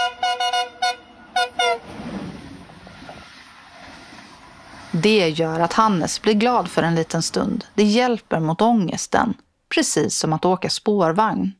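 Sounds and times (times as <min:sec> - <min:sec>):
train horn tooting: 0:00.0 - 0:02.3
train rumbling as it moves away: 0:00.0 - 0:09.0
speech: 0:04.9 - 0:11.5.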